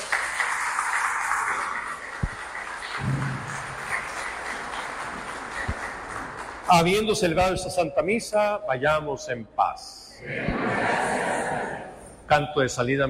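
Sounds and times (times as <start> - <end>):
audience applause: 0.0 - 7.2
speech: 6.7 - 11.2, 12.3 - 13.0
laughter: 10.2 - 12.0.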